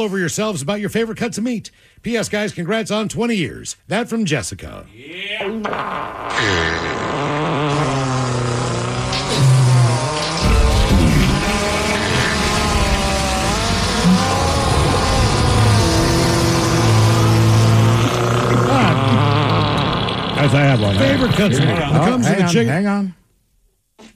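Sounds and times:
speech: 0.0 - 8.0, 20.4 - 23.2
montage of fart sounds: 5.4 - 22.2, 24.0 - 24.1.

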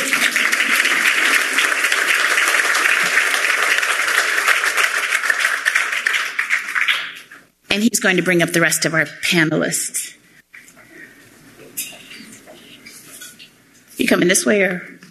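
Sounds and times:
audience applause: 0.0 - 7.3
speech: 7.8 - 10.0, 14.1 - 15.0.

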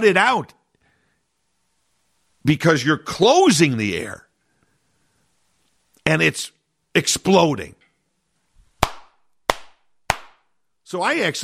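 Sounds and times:
speech: 0.0 - 0.6, 2.4 - 4.2, 6.1 - 7.8, 10.9 - 11.4
palm-in-palm hand claps: 8.8 - 10.5.

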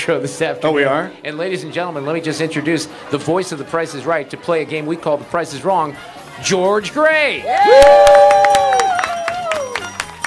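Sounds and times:
speech: 0.0 - 8.7
high sustained whoops from the crowd: 7.4 - 10.1
crowd clapping: 7.5 - 10.2.

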